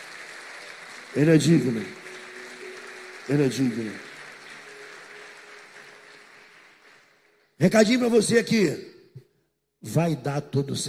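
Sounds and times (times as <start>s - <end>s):
audience applauding: 0.0s - 8.0s
speech: 1.1s - 2.0s, 3.3s - 4.1s, 7.6s - 8.9s, 9.8s - 10.8s.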